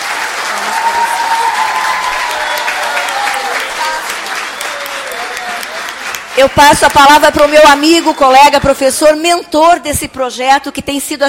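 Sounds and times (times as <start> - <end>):
audience applauding: 0.0 - 8.6
speech: 6.4 - 11.2.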